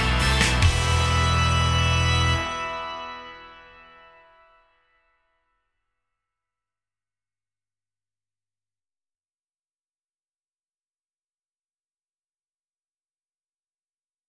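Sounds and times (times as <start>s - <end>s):
metal organ: 0.0s - 4.6s.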